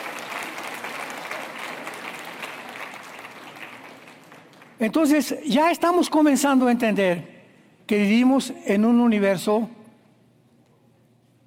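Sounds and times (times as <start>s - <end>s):
audience applause: 0.0s - 4.8s
speech: 4.8s - 7.3s, 7.9s - 9.8s.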